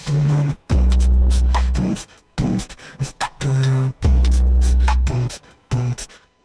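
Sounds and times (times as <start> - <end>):
boosted bass: 0.3 - 2.6, 3.8 - 5.9.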